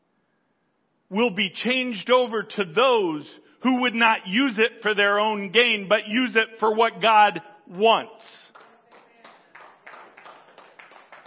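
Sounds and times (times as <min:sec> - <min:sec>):
speech: 0:01.1 - 0:08.4
audience clapping: 0:08.4 - 0:11.2.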